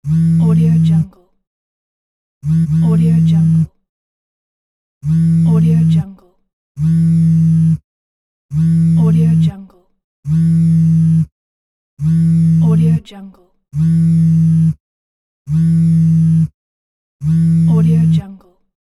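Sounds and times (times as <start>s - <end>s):
phone vibrating: 0.0s - 1.1s, 2.4s - 3.7s, 5.0s - 6.1s, 6.8s - 7.8s, 8.5s - 9.6s, 10.3s - 11.3s, 12.0s - 13.0s, 13.8s - 14.8s, 15.5s - 16.6s, 17.2s - 18.3s.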